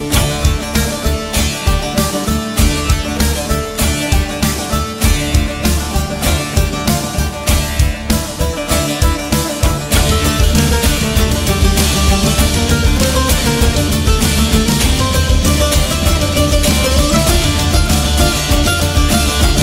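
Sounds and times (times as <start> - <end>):
baglama: 0.0 - 19.6.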